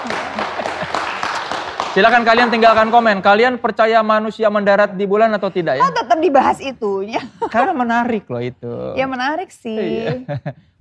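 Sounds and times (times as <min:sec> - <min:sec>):
laughter: 0:00.0 - 0:01.2, 0:09.9 - 0:10.6
audience applause: 0:00.0 - 0:03.2
speech: 0:02.0 - 0:10.7.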